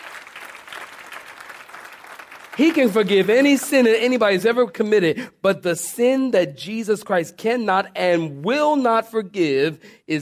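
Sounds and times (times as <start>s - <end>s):
audience clapping hands: 0.0s - 4.4s
speech: 2.6s - 10.2s.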